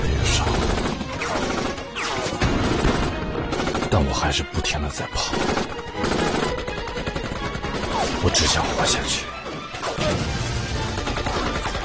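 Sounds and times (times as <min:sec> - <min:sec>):
gunfire in a desert: 0:00.4 - 0:04.0, 0:05.2 - 0:08.8, 0:09.8 - 0:11.8
speech: 0:03.9 - 0:05.8, 0:08.3 - 0:09.4.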